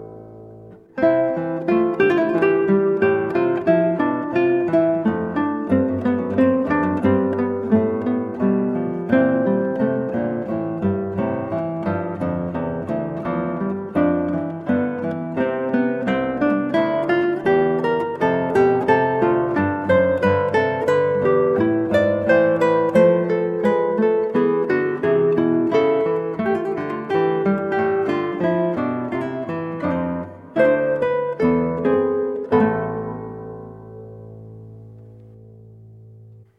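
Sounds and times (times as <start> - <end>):
harpsichord suite minuet played on guitar: 0.0 - 36.5.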